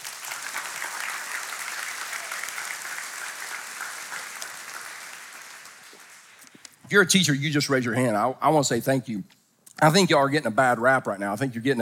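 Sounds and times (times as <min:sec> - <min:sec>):
audience applauding: 0:00.0 - 0:06.5
speech: 0:06.9 - 0:11.8.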